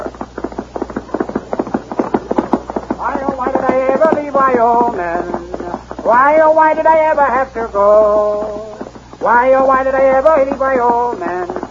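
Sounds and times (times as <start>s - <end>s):
thundering horse hoofbeats galloping: 0.0s - 11.7s
speech: 4.2s - 5.4s, 6.1s - 11.4s.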